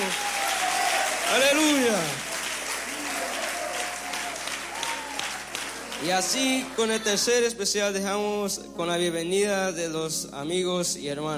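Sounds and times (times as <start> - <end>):
audience applause: 0.0 - 7.5
speech: 1.3 - 2.3, 6.0 - 11.3.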